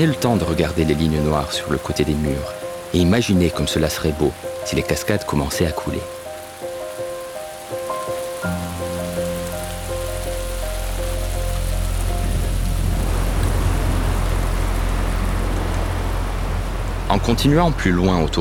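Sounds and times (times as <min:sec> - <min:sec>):
speech: 0:00.0 - 0:06.2, 0:17.2 - 0:18.3
rain: 0:00.0 - 0:18.3
low droning tone: 0:11.6 - 0:17.1.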